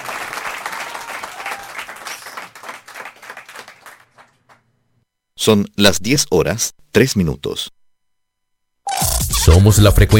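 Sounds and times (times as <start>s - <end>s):
audience applause: 0.0s - 4.6s
speech: 5.4s - 7.8s, 9.5s - 10.1s.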